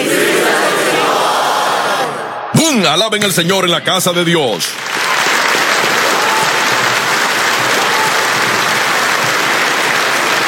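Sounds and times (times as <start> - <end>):
audience shouting together: 0.0 - 2.6, 5.6 - 10.4
speech: 2.9 - 4.8.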